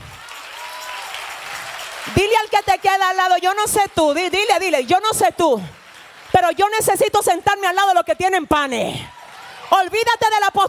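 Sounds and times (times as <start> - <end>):
audience applause: 0.0 - 7.4, 9.1 - 9.9
speech: 2.0 - 10.6.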